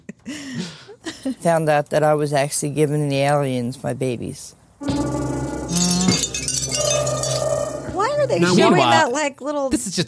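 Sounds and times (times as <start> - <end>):
speech: 0.3 - 4.6, 8.3 - 10.0
wind chimes tinkling: 5.7 - 7.8.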